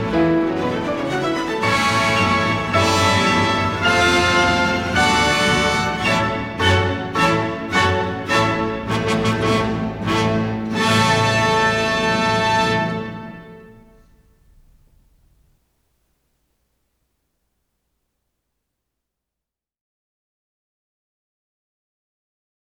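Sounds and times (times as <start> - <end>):
piano concerto: 0.0 - 14.8.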